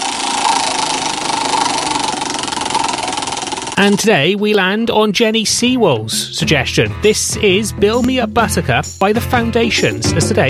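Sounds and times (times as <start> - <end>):
prize wheel spinning: 0.0 - 4.6
speech: 3.8 - 10.4.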